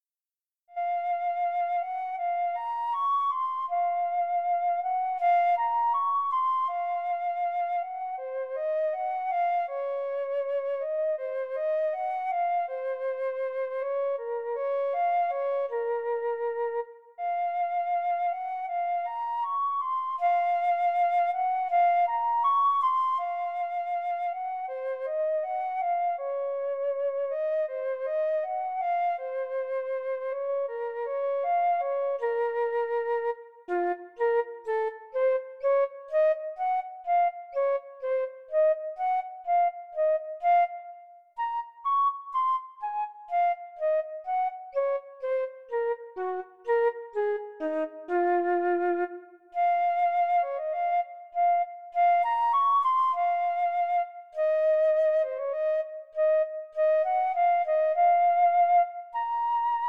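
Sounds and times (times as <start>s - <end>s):
solo flute: 0.7s - 59.8s.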